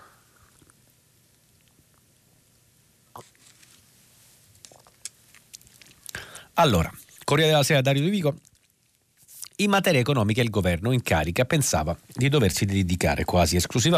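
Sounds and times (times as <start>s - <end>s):
faint hiss: 0.0s - 13.9s
person sipping a drink: 0.2s - 0.9s, 3.1s - 3.8s, 4.6s - 7.3s, 8.4s - 9.6s
speech: 6.6s - 8.5s, 9.6s - 13.9s.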